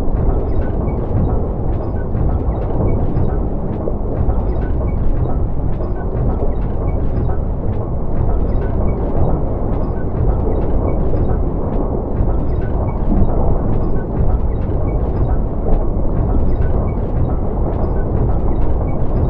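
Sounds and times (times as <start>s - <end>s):
steampunk sci-fi submarine vehicle moving underwater: 0.0s - 19.2s.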